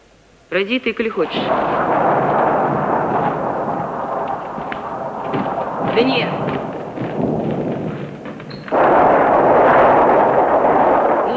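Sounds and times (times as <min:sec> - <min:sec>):
speech: 0:00.5 - 0:02.0, 0:06.0 - 0:06.4
thunder rumbling: 0:01.2 - 0:11.3.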